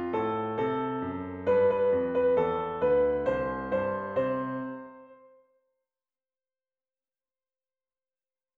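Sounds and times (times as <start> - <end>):
piano piece: 0.0 - 5.4.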